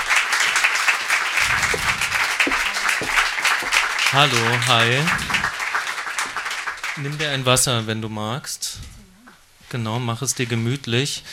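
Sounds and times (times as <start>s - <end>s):
studio audience applause: 0.0s - 7.2s
speech: 4.1s - 5.3s, 7.0s - 8.9s, 9.7s - 11.3s.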